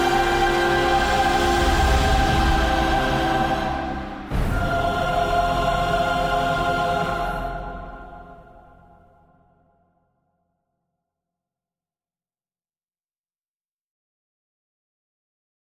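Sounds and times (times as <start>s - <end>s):
trailer choir: 0.0s - 9.5s.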